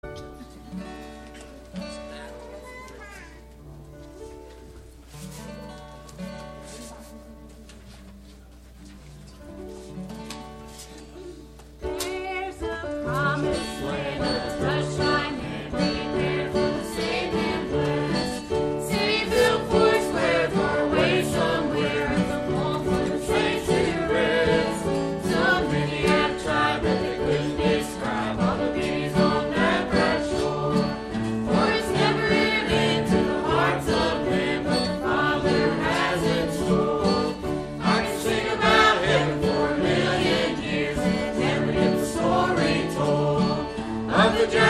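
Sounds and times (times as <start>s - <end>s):
youth choir singing: 12.1s - 44.6s.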